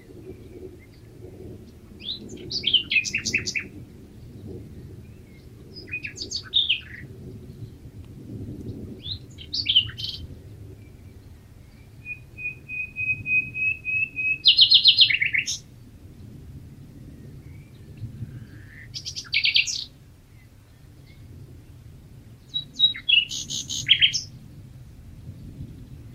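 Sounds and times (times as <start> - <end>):
common nightingale singing: 2.0 - 4.4, 5.1 - 7.7, 8.7 - 15.7, 17.2 - 21.3, 22.4 - 24.4.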